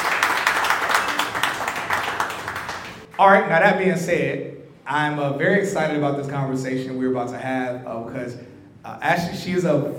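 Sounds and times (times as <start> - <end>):
audience applause: 0.0 - 3.1
speech: 3.2 - 9.9.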